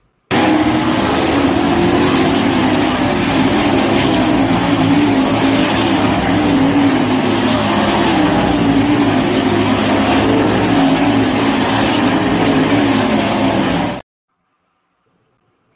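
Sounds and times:
race cars roaring around a local dirt track: 0.3s - 14.0s.

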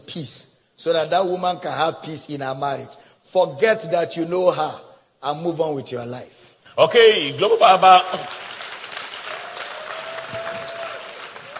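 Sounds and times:
speech: 0.1s - 8.4s
audience applause: 7.4s - 11.5s.

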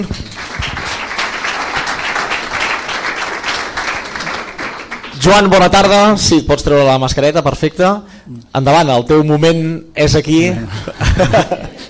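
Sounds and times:
speech: 0.0s - 0.2s, 5.2s - 11.8s
audience applause: 0.0s - 5.5s
laughter: 10.4s - 11.8s.

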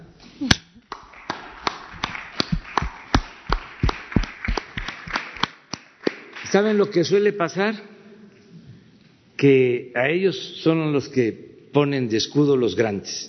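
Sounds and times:
applause: 0.9s - 6.8s
speech: 6.5s - 7.9s, 9.4s - 13.2s.

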